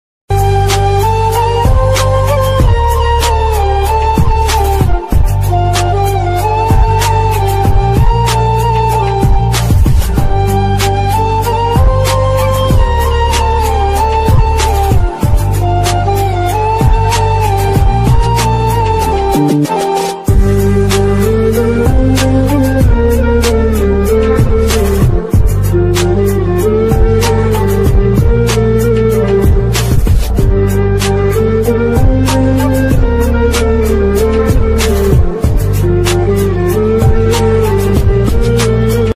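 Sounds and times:
sad romantic instrumental ringtone music: 0:00.3 - 0:39.1.

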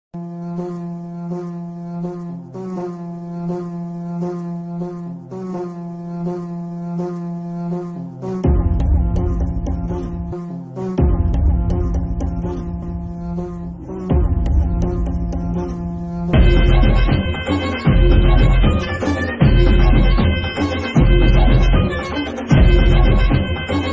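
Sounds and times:
background music song: 0:07.9 - 0:23.9.

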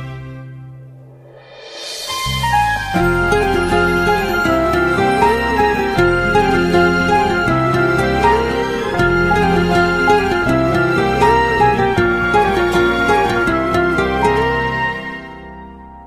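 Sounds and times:
love background music ringtone: 0:02.1 - 0:16.0.

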